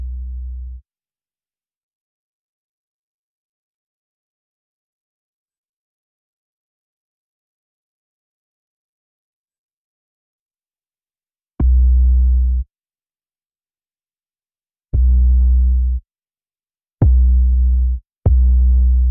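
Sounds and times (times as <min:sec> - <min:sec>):
bass: 0:00.0 - 0:00.8, 0:11.6 - 0:12.7, 0:14.9 - 0:16.0, 0:17.0 - 0:19.1.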